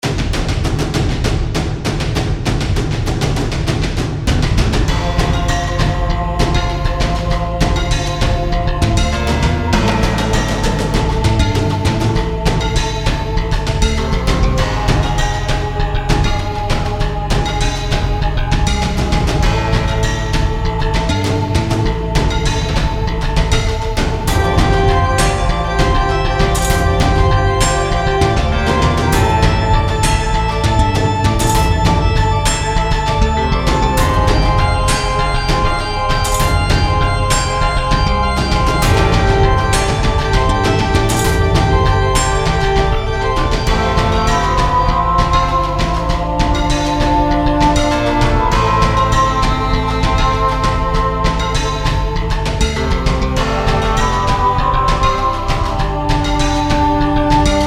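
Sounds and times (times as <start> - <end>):
storm drums: 0.0 - 57.6.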